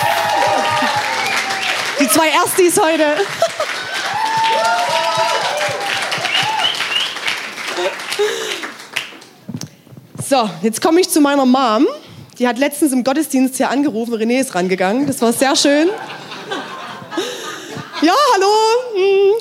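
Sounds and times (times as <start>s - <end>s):
audience applause: 0.0s - 9.5s
laughter: 0.1s - 7.0s, 7.7s - 8.8s, 15.7s - 18.4s
speech: 2.1s - 3.7s, 10.3s - 17.3s, 18.0s - 19.4s.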